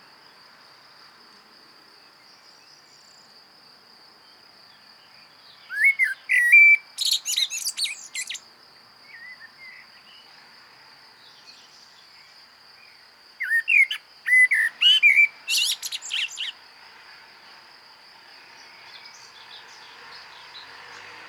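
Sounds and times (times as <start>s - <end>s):
common blackbird singing: 5.6s - 8.4s, 13.4s - 16.6s.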